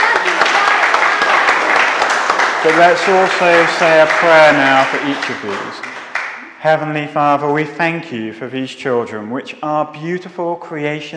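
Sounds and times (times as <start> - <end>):
church congregation applauding for a group of children: 0.0 - 7.0
speech: 2.6 - 11.1.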